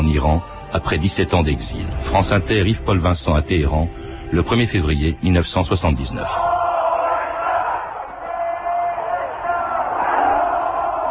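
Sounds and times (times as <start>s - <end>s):
speech: 0.1s - 6.5s
huge crowd shouting in Tehran: 6.2s - 11.0s.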